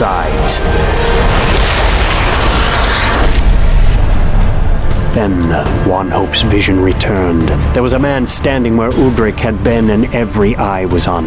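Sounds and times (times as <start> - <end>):
speech: 0.0 - 0.9, 5.2 - 11.2
thunder crack: 0.1 - 6.4.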